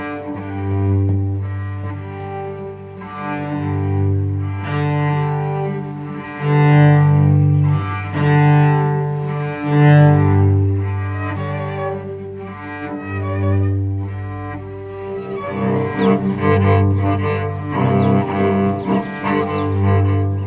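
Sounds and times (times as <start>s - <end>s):
cello improvisation: 0.0s - 20.4s.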